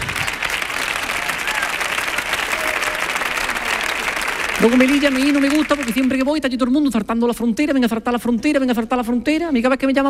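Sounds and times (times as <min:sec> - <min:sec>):
audience applause: 0:00.0 - 0:06.3
speech: 0:04.6 - 0:10.0.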